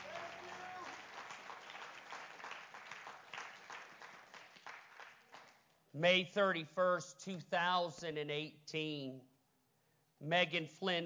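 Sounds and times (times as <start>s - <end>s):
audience clapping hands: 0.0s - 5.8s
speech: 6.0s - 9.3s, 10.2s - 11.0s.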